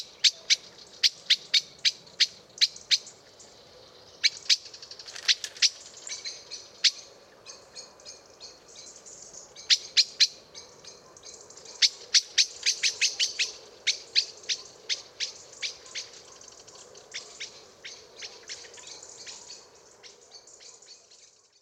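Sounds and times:
common blackbird chink calls: 0.0s - 21.6s.

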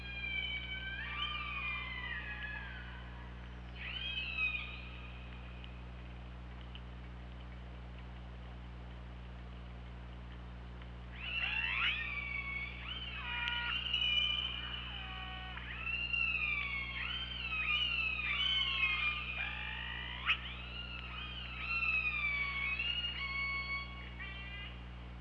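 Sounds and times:
killer whale calls: 0.0s - 5.2s, 11.1s - 24.8s
persistent low hum: 0.0s - 25.1s.

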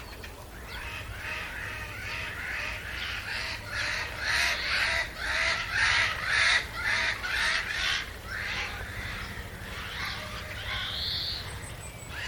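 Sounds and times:
Eurasian jay Garrulus glandarius rough scratchy calls: 0.7s - 12.2s.

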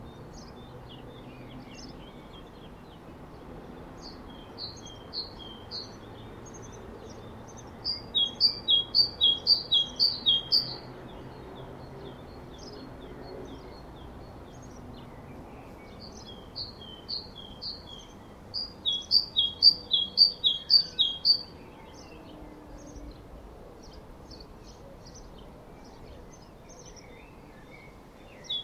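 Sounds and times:
great tit song: 4.0s - 10.9s, 13.4s - 21.6s.

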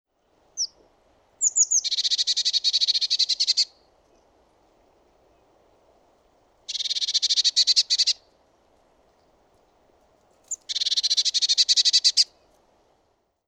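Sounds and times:
Eurasian blue tit churring call: 1.4s - 3.8s, 6.7s - 8.2s, 10.5s - 12.3s.

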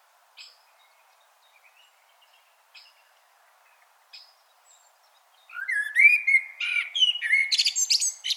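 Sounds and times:
common blackbird song: 0.4s - 8.3s.

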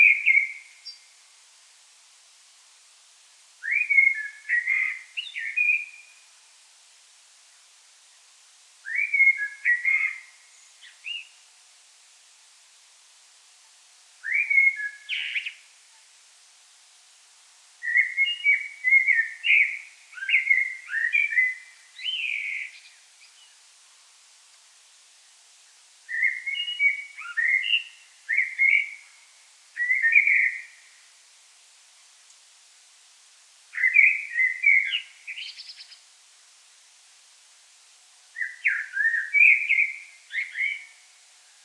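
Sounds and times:
common blackbird singing: 0.0s - 1.1s, 3.6s - 6.2s, 8.8s - 11.4s, 14.2s - 15.6s, 17.8s - 23.6s, 26.1s - 29.2s, 29.8s - 30.9s, 33.7s - 36.0s, 38.4s - 41.0s
faint steady hiss: 0.0s - 41.6s.

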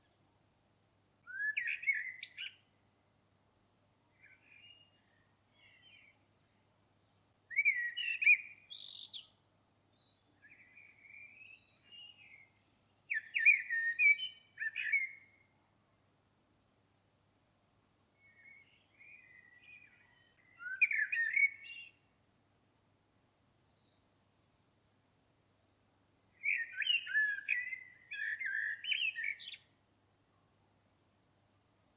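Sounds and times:
common blackbird song: 1.2s - 2.8s, 4.1s - 15.6s, 18.1s - 22.2s, 23.6s - 31.9s.

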